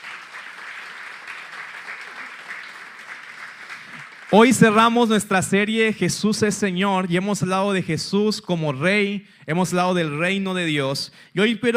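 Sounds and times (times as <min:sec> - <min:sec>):
audience applauding: 0:00.0 - 0:05.0
speech: 0:04.3 - 0:11.7.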